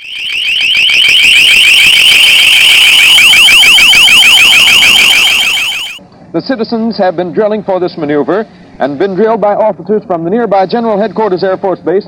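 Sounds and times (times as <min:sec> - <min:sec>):
air raid warning sirens atop the firehouse in Farmingdale shrieking: 0:00.0 - 0:06.0
speech: 0:06.3 - 0:12.0.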